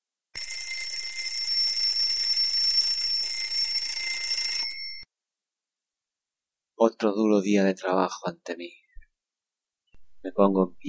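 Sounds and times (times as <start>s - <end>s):
alarm clock ringing: 0.4s - 5.1s
speech: 6.8s - 8.8s, 10.2s - 10.8s.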